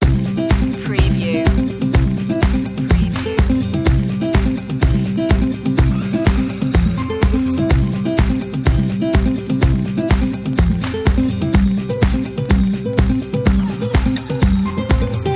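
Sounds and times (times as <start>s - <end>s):
folk music loop: 0.0s - 15.3s.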